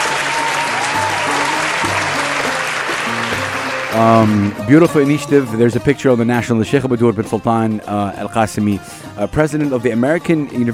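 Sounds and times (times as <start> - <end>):
round of applause from many hands: 0.0 - 4.6
speech: 3.9 - 10.7.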